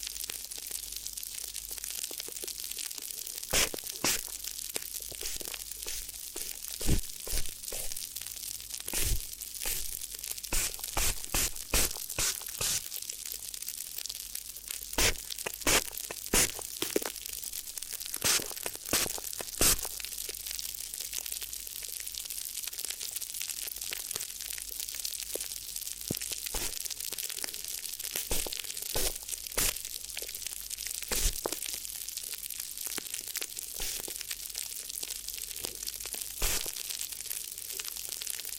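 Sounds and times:
crinkly rustling for an ear massage: 0:02.1 - 0:13.2, 0:14.8 - 0:20.4, 0:25.3 - 0:37.1
crackling pops: 0:03.4 - 0:08.2, 0:08.8 - 0:13.2, 0:14.8 - 0:20.4, 0:25.3 - 0:31.9, 0:32.9 - 0:34.4, 0:36.1 - 0:37.1.

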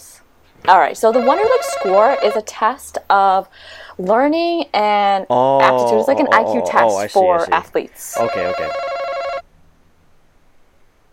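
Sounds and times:
speech: 0:00.6 - 0:08.9
quiz contestant electronic buzzer tone: 0:01.1 - 0:02.4, 0:08.1 - 0:09.4.

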